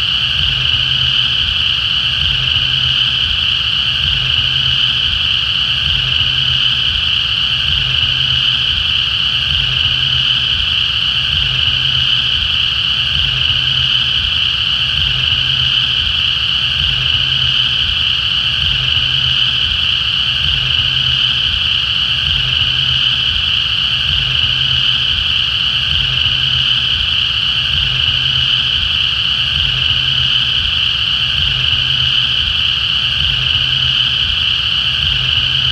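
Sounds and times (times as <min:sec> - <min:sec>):
cicada at Cane Creek: 0:00.0 - 0:35.7.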